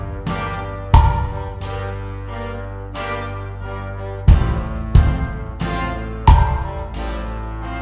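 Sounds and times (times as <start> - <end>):
glockenspiel played at practice tempo: 0.3 - 1.9, 2.9 - 3.9, 5.6 - 7.0.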